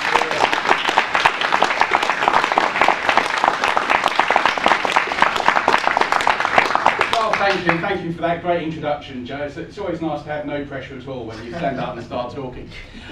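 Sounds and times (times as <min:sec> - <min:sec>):
laughter: 0:00.0 - 0:01.2, 0:11.3 - 0:13.1
audience applause: 0:00.0 - 0:07.9
speech: 0:07.5 - 0:13.1.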